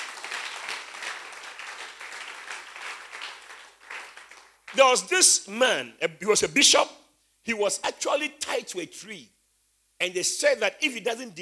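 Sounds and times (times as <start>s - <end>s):
audience clapping hands: 0.0s - 5.0s
speech: 4.7s - 9.4s, 10.0s - 11.3s.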